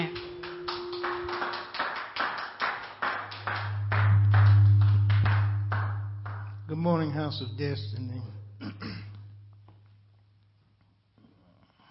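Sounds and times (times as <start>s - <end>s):
audience hand clapping: 0.0s - 7.4s
speech: 6.8s - 8.4s.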